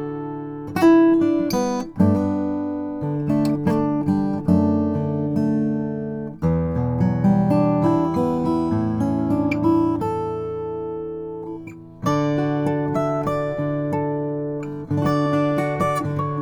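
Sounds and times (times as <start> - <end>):
acoustic guitar: 0.0 - 16.4.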